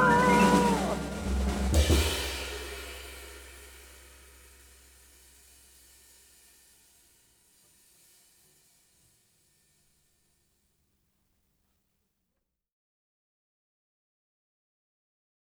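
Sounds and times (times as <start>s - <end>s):
saxophone: 0.0s - 1.3s.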